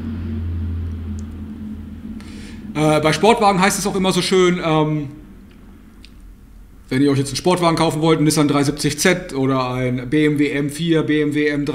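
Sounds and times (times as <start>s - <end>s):
large aircraft rumbling overhead: 0.0s - 11.7s
speech: 2.8s - 5.2s, 6.9s - 11.7s.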